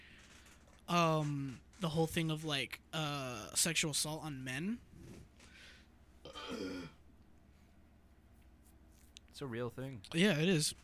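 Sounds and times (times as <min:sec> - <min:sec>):
speech: 0:00.9 - 0:05.2, 0:06.5 - 0:07.0, 0:09.4 - 0:10.8
burp caught in the throat: 0:06.2 - 0:07.0.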